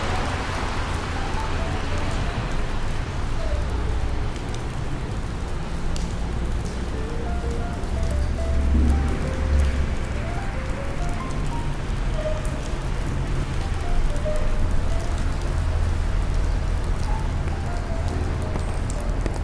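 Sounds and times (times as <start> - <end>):
rain pattering on pavement in New York: 0.0 - 19.4
traffic rumble in New York: 0.0 - 19.4.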